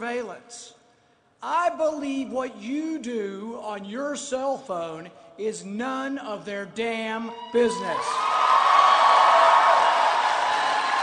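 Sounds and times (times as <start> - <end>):
speech: 0.0 - 0.8, 1.4 - 8.5
huge applause at political conference: 8.2 - 11.0.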